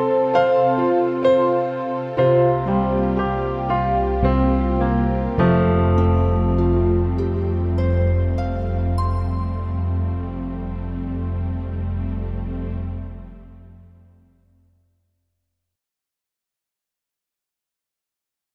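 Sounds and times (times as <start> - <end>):
pianos: 0.0 - 14.5.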